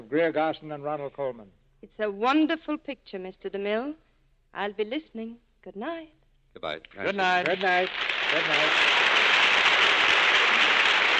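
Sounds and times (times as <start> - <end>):
speech: 0.1 - 9.0
studio audience applause: 7.0 - 11.1.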